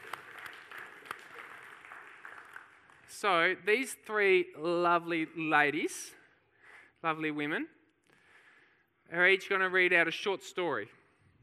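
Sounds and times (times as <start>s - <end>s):
audience round of applause: 0.0s - 3.4s
speech: 3.2s - 6.2s, 7.0s - 7.8s, 9.1s - 11.0s.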